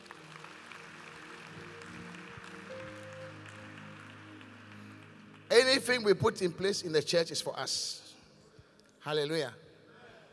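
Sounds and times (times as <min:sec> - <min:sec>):
audience clapping: 0:00.0 - 0:07.0
speech: 0:05.6 - 0:08.0, 0:09.0 - 0:09.6.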